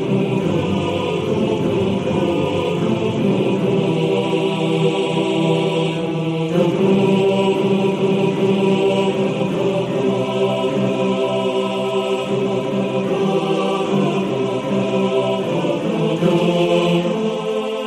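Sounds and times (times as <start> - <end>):
choir singing: 0.0 - 17.8.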